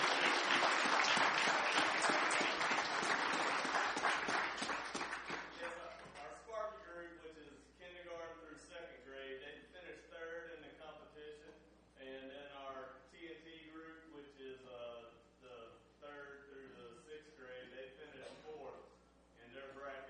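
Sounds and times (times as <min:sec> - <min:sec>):
audience applause: 0:00.0 - 0:05.9.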